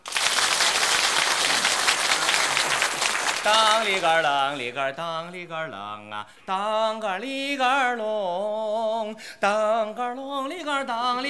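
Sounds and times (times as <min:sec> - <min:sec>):
audience applause: 0:00.0 - 0:04.7
speech: 0:03.4 - 0:11.2.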